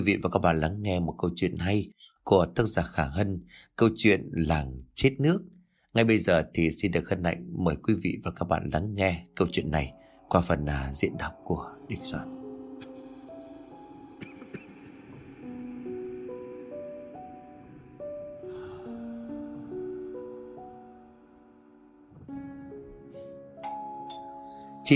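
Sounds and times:
speech: 0.0 - 12.4
chiming doorbell ringing rapidly: 23.6 - 24.5.

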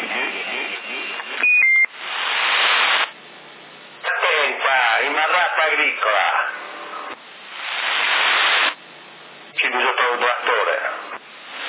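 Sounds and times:
hissing crackly telephone line noise: 0.0 - 3.3, 4.0 - 11.6
telephone electronic beeps: 1.4 - 1.9.

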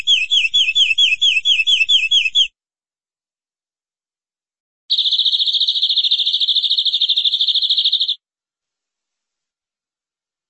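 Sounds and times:
canary trilling: 0.0 - 2.5, 4.9 - 8.2.

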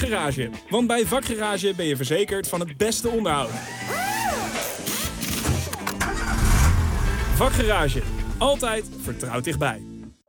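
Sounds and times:
speech: 0.0 - 4.0, 7.4 - 9.9
car engine starting: 3.6 - 9.0.

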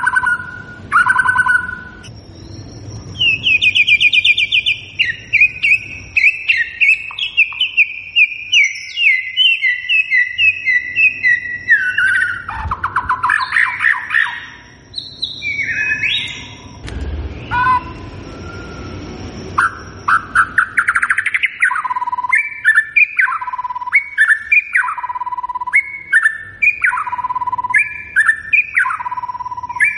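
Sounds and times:
White-rumped shama singing whistled phrases: 0.0 - 29.9.

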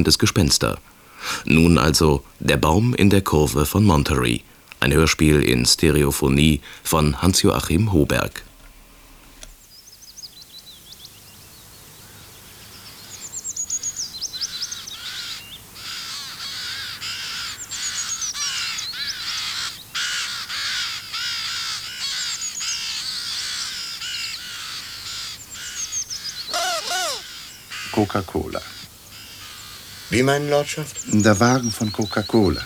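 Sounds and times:
speech: 0.0 - 8.5, 28.1 - 28.8, 30.1 - 32.6
flock of ravens cawing: 14.4 - 31.6.

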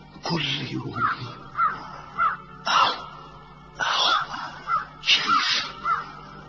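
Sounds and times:
speech: 0.3 - 1.6
crow cawing in a hermit's cell: 0.9 - 3.1, 3.8 - 6.4.

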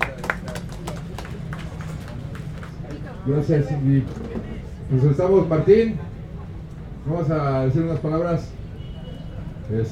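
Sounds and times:
scattered audience applause: 0.0 - 3.0
speech: 3.2 - 6.1, 7.1 - 8.6, 9.7 - 9.9.

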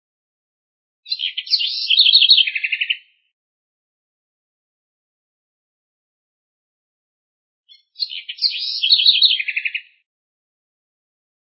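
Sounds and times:
house wren singing: 1.1 - 3.3, 7.7 - 10.0.

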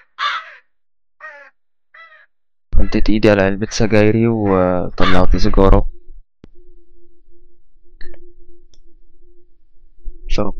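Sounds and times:
crow cawing: 0.0 - 5.5
speech: 2.8 - 5.9, 10.4 - 10.5.

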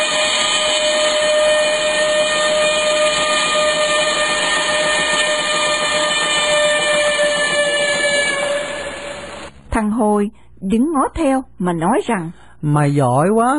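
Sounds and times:
steam train whistle: 0.0 - 9.5
speech: 10.2 - 13.5.

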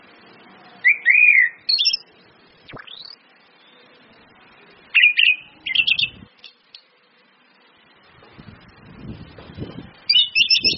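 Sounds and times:
Orange-headed thrush singing sweet whistled phrases: 0.8 - 2.0, 2.7 - 3.8, 4.9 - 6.6, 10.1 - 10.7.

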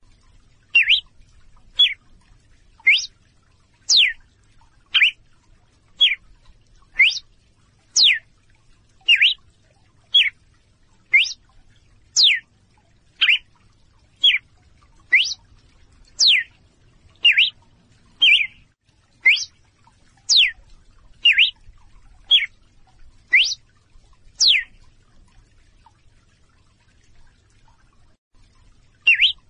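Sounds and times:
female red-cowled cardinal calling in clear short whistles: 0.8 - 1.0, 2.9 - 3.1, 3.9 - 4.2, 5.0 - 5.2, 7.0 - 7.2, 8.0 - 8.2, 9.1 - 9.4, 11.1 - 11.4, 12.2 - 12.4, 13.2 - 13.4, 15.1 - 15.4, 16.2 - 16.5, 17.2 - 17.6, 18.2 - 18.6, 19.3 - 19.5, 20.3 - 20.5, 21.2 - 21.5, 23.3 - 23.6, 24.4 - 24.7, 29.1 - 29.4.

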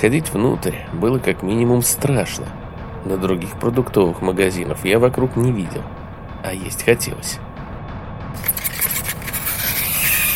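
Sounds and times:
speech: 0.0 - 7.5
screeching scrape: 8.4 - 10.3.

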